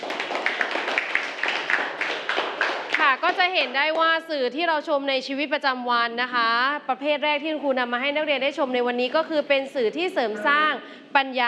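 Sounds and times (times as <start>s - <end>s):
group of people applauding for a student group: 0.0s - 4.2s
speech: 3.1s - 11.4s.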